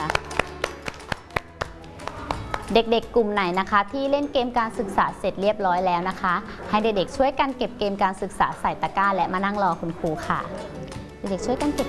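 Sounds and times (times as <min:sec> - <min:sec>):
children clapping in a classroom counting game: 0:00.0 - 0:02.8
speech: 0:02.7 - 0:11.8.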